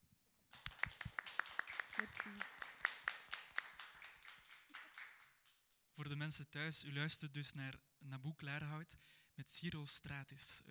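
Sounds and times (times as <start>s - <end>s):
small intimate applause: 0.5s - 6.0s
speech: 2.0s - 2.6s, 6.0s - 10.6s.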